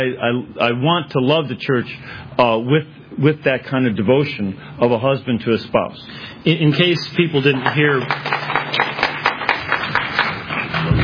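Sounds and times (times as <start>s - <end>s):
speech: 0.0s - 8.8s
audience applause: 7.4s - 11.0s.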